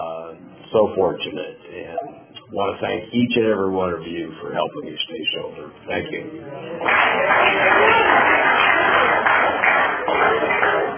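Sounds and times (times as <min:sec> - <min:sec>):
speech: 0:00.7 - 0:09.6, 0:10.2 - 0:10.9
audience applause: 0:06.7 - 0:10.9.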